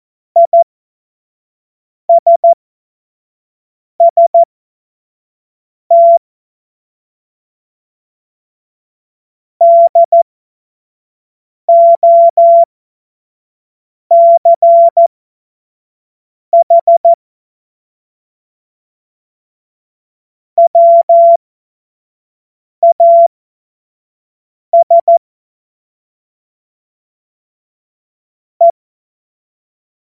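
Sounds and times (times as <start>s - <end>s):
CW Morse code beeps: 0.4s - 0.6s, 2.1s - 2.6s, 4.0s - 4.5s, 5.9s - 6.2s, 9.6s - 10.2s, 11.7s - 12.7s, 14.1s - 15.1s, 16.6s - 17.2s, 20.6s - 21.4s, 22.8s - 23.3s, 24.8s - 25.2s.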